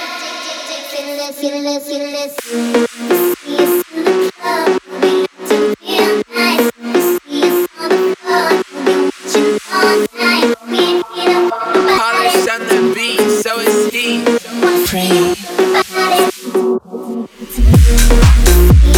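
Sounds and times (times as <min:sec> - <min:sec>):
phonk music: 0:02.4 - 0:18.9.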